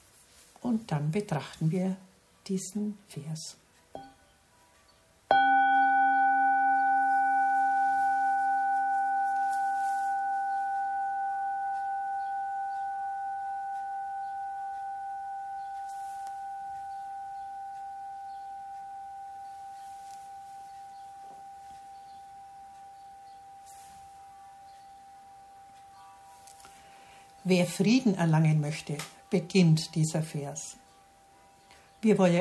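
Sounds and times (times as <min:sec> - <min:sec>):
speech: 0:00.6 - 0:03.6, 0:27.6 - 0:30.8, 0:32.0 - 0:32.3
ringing bell tone: 0:05.3 - 0:28.0.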